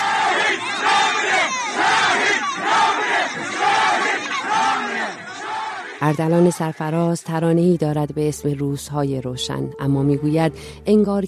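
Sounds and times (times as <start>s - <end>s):
crowd shouting a protest slogan: 0.0s - 6.8s
speech: 6.0s - 11.2s.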